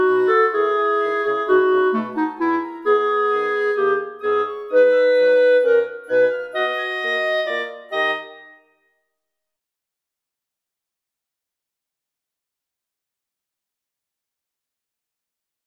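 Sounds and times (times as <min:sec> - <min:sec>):
clarinet: 0:00.0 - 0:08.9.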